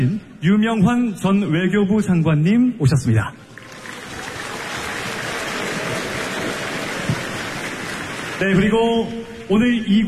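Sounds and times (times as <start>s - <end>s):
speech: 0.0s - 3.5s, 8.4s - 10.0s
audience applause: 3.5s - 8.8s.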